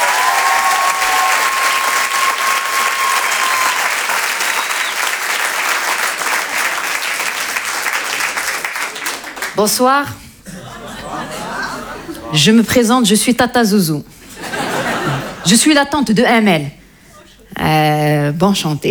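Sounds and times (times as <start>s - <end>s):
thunderous audience applause: 0.0s - 9.6s
speech: 9.6s - 10.2s, 12.3s - 14.1s, 15.4s - 16.8s, 17.6s - 18.8s
laughter: 10.4s - 12.6s, 14.2s - 15.6s.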